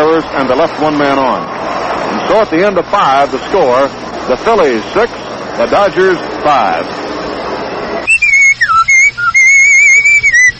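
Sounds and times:
speech: 0.2 - 1.6, 2.3 - 7.0
man whistling a tune: 8.1 - 10.5.

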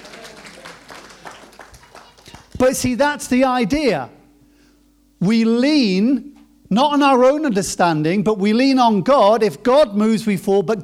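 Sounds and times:
audience applause: 0.0 - 2.6
speech: 2.6 - 4.2, 5.2 - 10.8.

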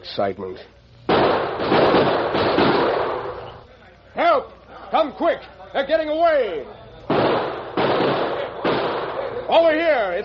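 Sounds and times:
speech: 0.0 - 2.1, 4.3 - 6.8, 9.5 - 10.2
pistol shots fired in an alley: 1.1 - 3.4, 7.1 - 9.4.

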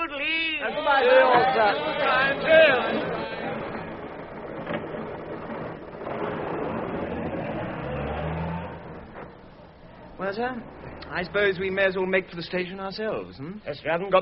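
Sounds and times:
speech: 0.6 - 3.0, 10.2 - 14.1
limousine engine rumbling and revving as it drives away: 1.7 - 12.3.

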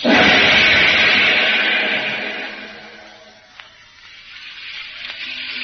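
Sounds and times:
heavy rain on a tropical island: 0.0 - 3.6.

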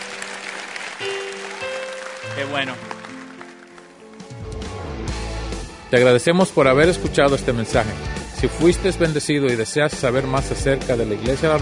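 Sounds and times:
audience applause: 0.0 - 4.7, 9.3 - 11.5
speech: 2.4 - 3.0, 5.9 - 11.5.

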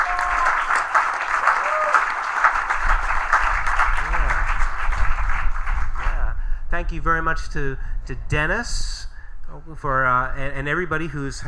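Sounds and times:
audience applause at the Belfast Ukulele Fest: 0.0 - 6.3
speech: 6.9 - 9.0, 9.7 - 11.4.

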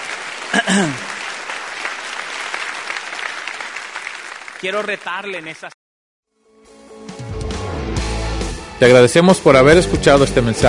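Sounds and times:
audience applause: 0.0 - 5.8
speech: 0.7 - 1.1, 4.6 - 5.8, 8.8 - 10.6.

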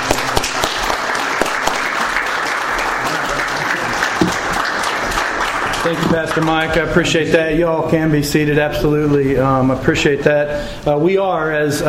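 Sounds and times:
audience hand clap of praise: 0.0 - 6.9
speech: 5.8 - 11.8.

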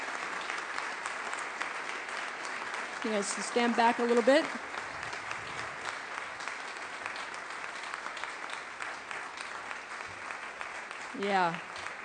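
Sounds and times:
people clapping: 0.0 - 12.0
speech: 3.0 - 4.8, 11.2 - 11.8.

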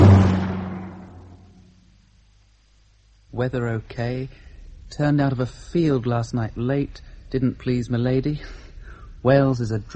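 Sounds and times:
car passing by: 0.0 - 1.0
speech: 3.4 - 8.6, 9.2 - 9.9.

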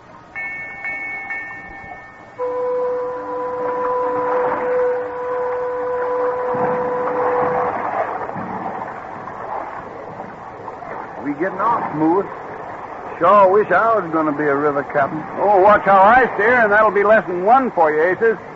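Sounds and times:
continuous rumbling churning background: 0.0 - 18.5
steamboat sailing signal whistle: 0.4 - 8.4
speech: 11.4 - 12.4, 13.2 - 18.5.

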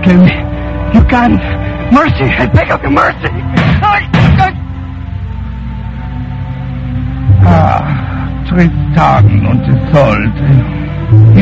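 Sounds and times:
low steady hum: 0.0 - 11.3
speech: 0.1 - 0.4, 1.1 - 4.6, 7.4 - 11.3
gunshot in an old-time radio drama: 3.6 - 4.4.

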